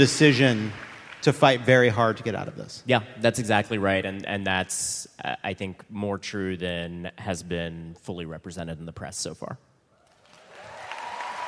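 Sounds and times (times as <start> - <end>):
audience applause: 0.0 - 1.8, 10.2 - 11.4
speech: 0.0 - 9.7.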